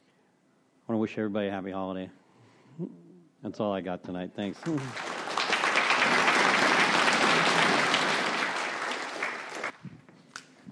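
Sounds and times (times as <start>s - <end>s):
speech: 0.9s - 2.2s, 2.8s - 5.1s
audience applause: 4.6s - 9.8s.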